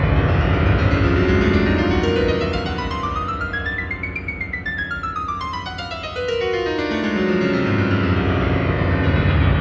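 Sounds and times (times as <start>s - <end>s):
musical scale: 0.1s - 9.5s.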